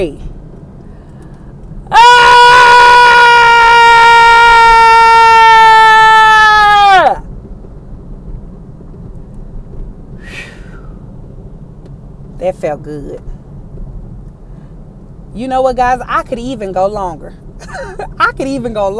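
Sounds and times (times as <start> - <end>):
speech: 0.0 - 0.3, 12.6 - 13.4, 15.4 - 17.5, 18.4 - 18.9
people screaming and yelling together: 1.9 - 7.2.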